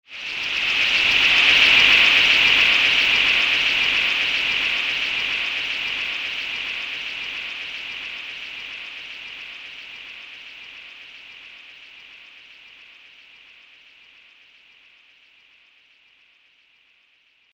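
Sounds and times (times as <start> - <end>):
vampire bats flying: 0.2 - 10.6.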